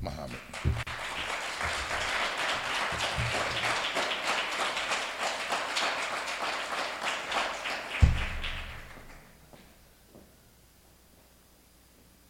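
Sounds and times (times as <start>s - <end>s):
audience applause: 0.0s - 9.4s.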